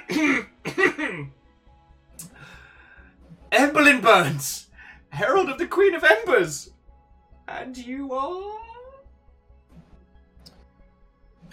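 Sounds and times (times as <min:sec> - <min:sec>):
person acting out a nervous throat clearing: 0:00.0 - 0:01.3
speech: 0:01.1 - 0:01.4, 0:03.5 - 0:04.6, 0:05.2 - 0:06.8, 0:07.5 - 0:08.7.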